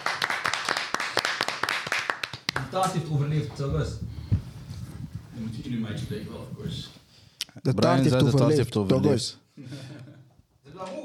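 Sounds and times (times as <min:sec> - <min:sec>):
applause: 0:00.0 - 0:02.9
speech: 0:02.7 - 0:04.4, 0:05.4 - 0:07.0, 0:07.6 - 0:09.9.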